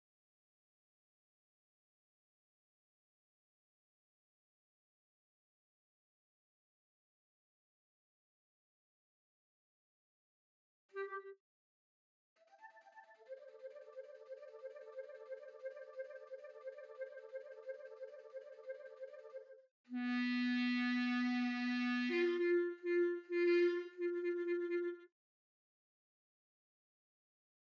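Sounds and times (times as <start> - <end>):
clarinet: 10.9 - 11.4, 12.4 - 25.1.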